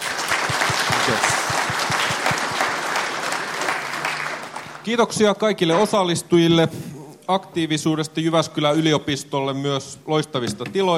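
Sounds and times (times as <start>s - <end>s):
audience applause: 0.0s - 4.9s
speech: 4.8s - 10.9s.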